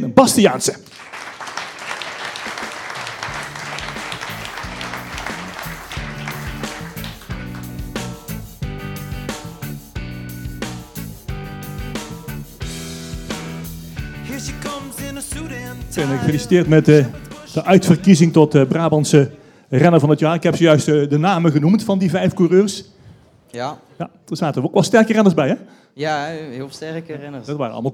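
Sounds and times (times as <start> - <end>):
speech: 0.0 - 1.1, 16.0 - 27.9
crowd applause: 0.8 - 8.2
upbeat music with a punchy beat: 2.2 - 19.2.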